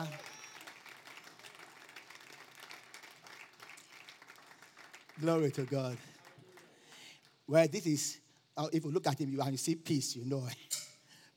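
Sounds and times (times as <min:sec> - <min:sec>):
audience clapping: 0:00.0 - 0:07.5
speech: 0:05.2 - 0:06.1, 0:07.5 - 0:10.7.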